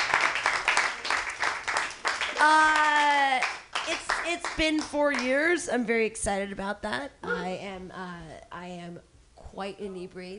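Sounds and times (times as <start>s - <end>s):
comedy club audience clapping: 0.0s - 5.5s
person cheering: 2.3s - 3.5s
speech: 2.4s - 2.8s, 3.9s - 10.3s.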